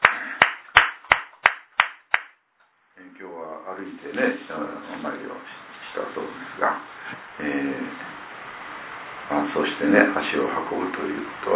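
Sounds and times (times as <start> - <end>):
celebratory applause: 0.0 - 2.4
speech: 3.2 - 8.2, 9.3 - 11.5.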